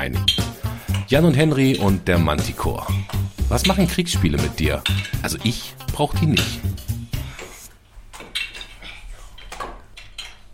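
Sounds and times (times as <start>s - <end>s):
speech: 1.1s - 6.8s
children playing with Lego bricks: 7.6s - 10.5s.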